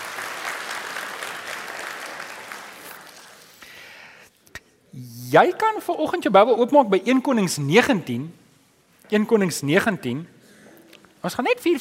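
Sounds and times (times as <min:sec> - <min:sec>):
audience clapping hands: 0:00.0 - 0:03.8
speech: 0:05.0 - 0:08.4, 0:09.1 - 0:10.4, 0:11.2 - 0:11.7.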